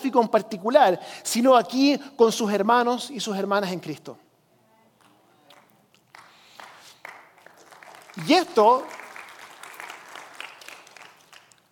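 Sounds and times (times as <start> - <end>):
speech: 0.0 - 4.2, 8.2 - 9.0
audience applauding: 6.1 - 11.7.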